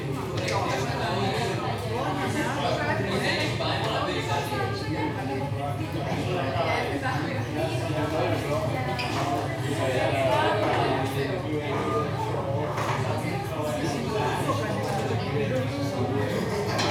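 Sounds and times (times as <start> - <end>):
crowd walla of many tourists at a burger bar in Barcelona: 0.1 - 16.8.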